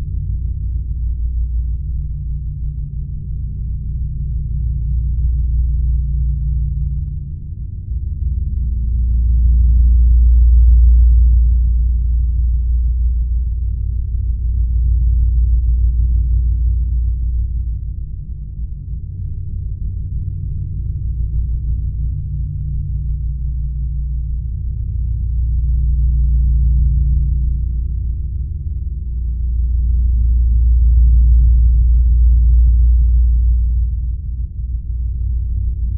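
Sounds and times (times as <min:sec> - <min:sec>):
spaceship interior rumble: 0:00.0 - 0:35.9.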